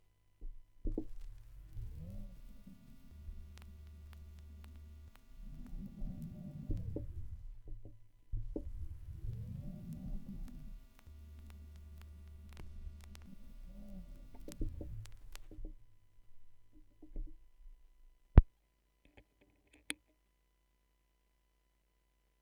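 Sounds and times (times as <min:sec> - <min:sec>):
vinyl record noise: 0:00.9 - 0:07.6, 0:08.4 - 0:15.7.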